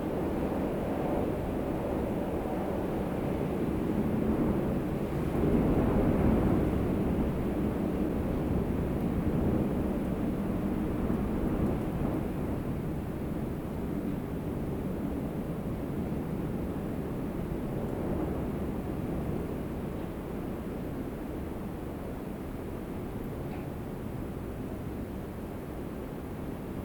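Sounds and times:
wind outside: 0.0 - 26.8.

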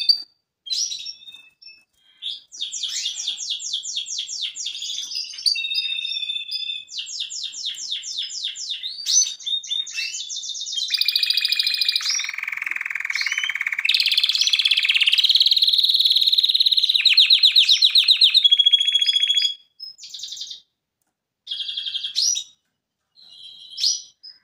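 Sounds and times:
canary trilling: 0.0 - 20.6, 21.5 - 22.6.

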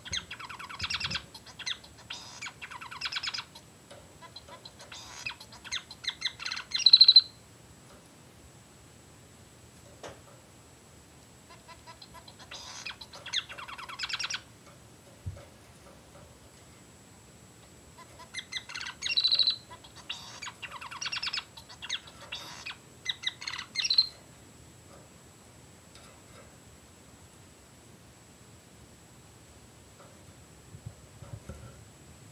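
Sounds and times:
society finch chattering: 0.0 - 7.4, 11.5 - 14.5, 18.0 - 24.2
low background hiss: 0.0 - 32.3.

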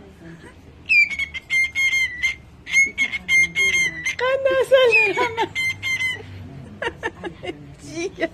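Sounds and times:
cockatiel giving raspy falling screeches: 0.9 - 6.2
laughter: 4.6 - 8.3.

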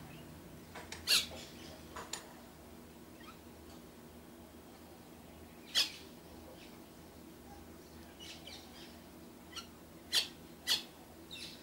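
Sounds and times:
faint background noise: 0.0 - 11.6
Myna squawking: 1.1 - 1.4, 5.7 - 6.1, 9.5 - 11.6.

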